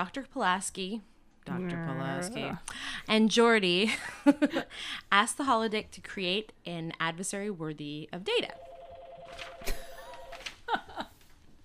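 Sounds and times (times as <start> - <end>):
speech: 0.0 - 8.7
phone ringing: 8.5 - 10.6.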